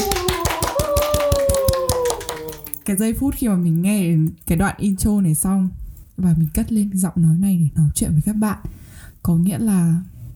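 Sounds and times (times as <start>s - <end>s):
hands clapping in a steady rhythm: 0.0s - 3.1s
speech: 2.9s - 10.1s.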